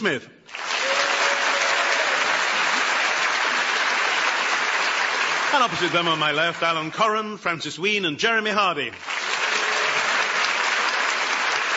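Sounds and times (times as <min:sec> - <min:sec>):
speech: 0:00.0 - 0:00.6, 0:05.5 - 0:09.1
studio audience applause welcoming teams on a comedy panel show: 0:00.5 - 0:07.1, 0:09.0 - 0:11.7.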